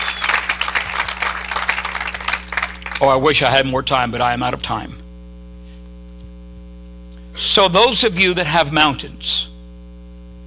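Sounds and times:
crowd clapping hands: 0.0s - 3.3s
low hum: 0.0s - 10.4s
speech: 3.0s - 5.0s, 7.4s - 9.5s.

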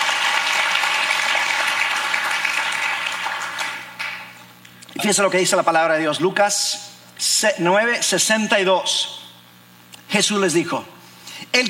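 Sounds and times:
audience applauding: 0.0s - 4.3s
speech: 5.0s - 9.2s, 10.1s - 11.6s.

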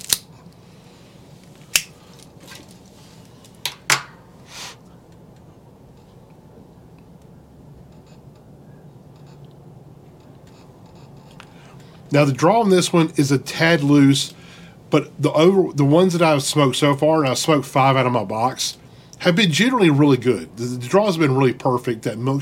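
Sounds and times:
Calibri V-cutter cutting a deep V into a box-pressed cigar: 0.0s - 0.3s, 1.6s - 2.0s
speech: 12.1s - 22.4s.

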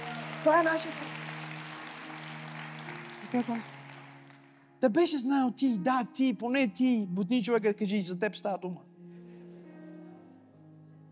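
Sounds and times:
audience applause: 0.0s - 4.7s
speech: 0.4s - 1.3s, 3.3s - 3.8s, 4.8s - 8.9s.

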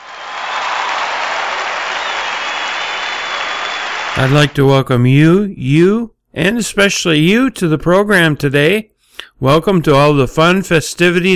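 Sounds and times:
crowd applause: 0.0s - 4.5s
speech: 4.2s - 11.3s.

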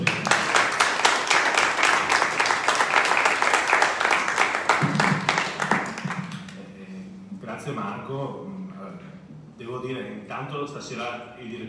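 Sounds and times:
audience applause: 0.0s - 6.6s
speech: 10.4s - 11.6s.

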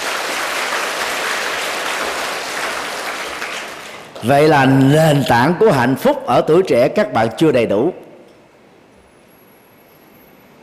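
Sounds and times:
crowd clapping: 0.0s - 5.0s
speech: 4.2s - 8.0s.

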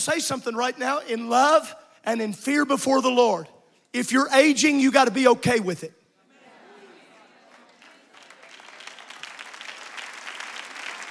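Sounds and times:
speech: 0.0s - 6.0s
smattering of applause: 7.4s - 11.0s.

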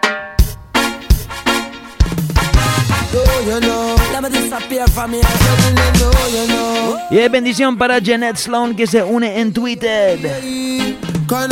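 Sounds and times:
music track with beat hits and deep bass line: 0.4s - 7.3s, 10.5s - 11.4s
speech: 3.4s - 10.7s, 11.3s - 11.4s.

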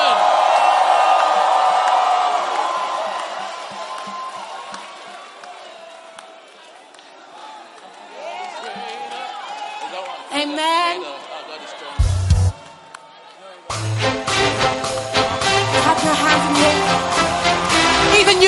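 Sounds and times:
crowd shouting: 0.0s - 18.4s.

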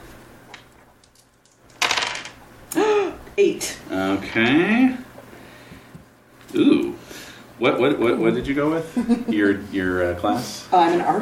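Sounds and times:
dice clattering across a table during a Ryuutama tabletop role-playing game: 1.5s - 2.4s
speech: 3.4s - 5.1s, 6.5s - 6.7s, 7.6s - 11.1s.

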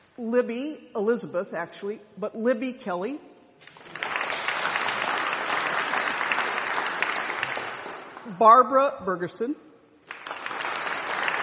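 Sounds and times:
speech: 0.2s - 3.8s, 8.3s - 9.7s
audience applause: 3.8s - 8.2s, 10.1s - 11.4s.

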